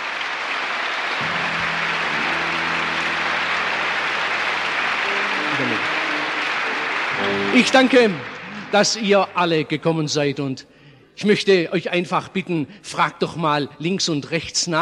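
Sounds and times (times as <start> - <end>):
audience applause: 0.0 - 9.9
speech: 7.6 - 14.8.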